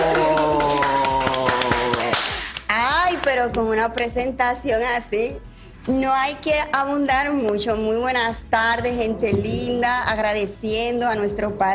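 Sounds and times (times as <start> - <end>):
applause: 0.0 - 3.4
speech: 3.4 - 11.7.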